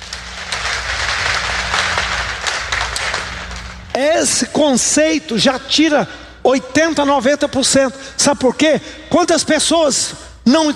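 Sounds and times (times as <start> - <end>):
audience applause: 0.0 - 3.9
low hum: 0.0 - 8.2
speech: 4.0 - 10.7.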